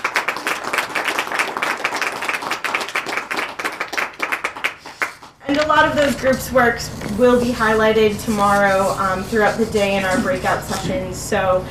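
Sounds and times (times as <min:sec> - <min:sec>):
audience applause: 0:00.0 - 0:05.4
speech: 0:05.5 - 0:11.7.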